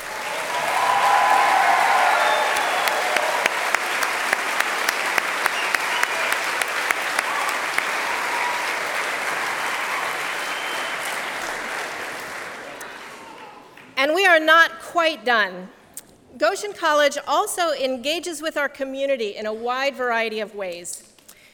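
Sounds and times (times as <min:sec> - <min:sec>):
sustained audience applause: 0:00.0 - 0:14.0
speech: 0:14.4 - 0:15.8, 0:16.4 - 0:21.1.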